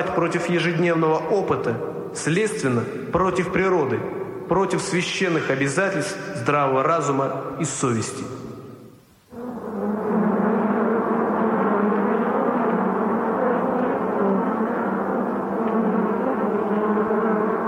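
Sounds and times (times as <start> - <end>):
speech: 0.0 - 8.5
dense swarm of flies buzzing: 9.0 - 17.6.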